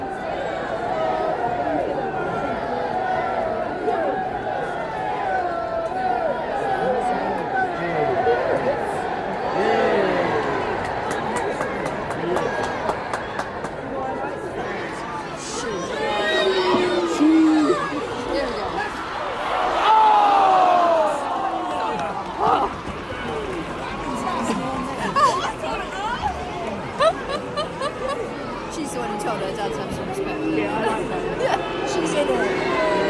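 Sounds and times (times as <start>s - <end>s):
women's football match at the Emirates: 0.0s - 33.0s
laughter: 24.1s - 28.6s.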